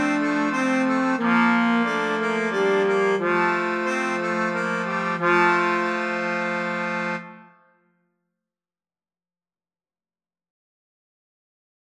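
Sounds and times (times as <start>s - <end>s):
musette music: 0.0s - 7.8s.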